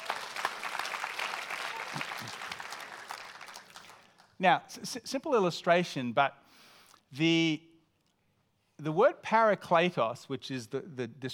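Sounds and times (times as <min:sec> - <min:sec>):
audience applause: 0:00.0 - 0:04.2
speech: 0:04.4 - 0:06.4, 0:07.1 - 0:07.7, 0:08.8 - 0:11.3.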